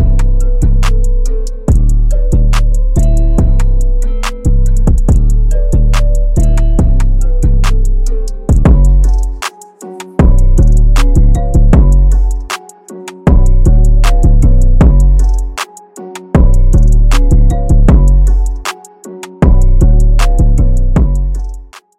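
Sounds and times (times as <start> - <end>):
drum kit: 0.0 - 21.8.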